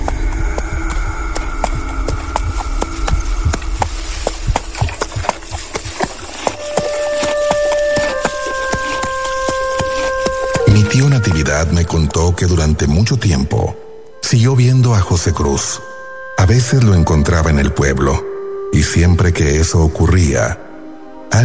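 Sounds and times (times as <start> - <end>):
horse hooves clip-clopping on hard ground: 0.0 - 12.0
tonal drone: 0.0 - 21.4
speech: 11.7 - 20.6.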